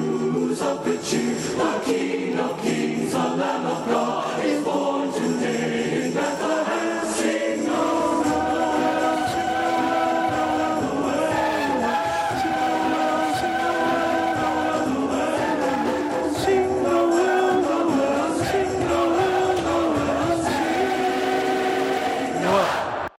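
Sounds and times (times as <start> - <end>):
high tenor vocal learning track: 0.0 - 23.0.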